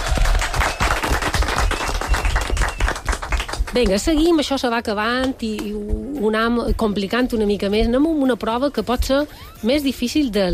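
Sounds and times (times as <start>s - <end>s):
applause: 0.0s - 4.0s
speech: 3.7s - 10.5s.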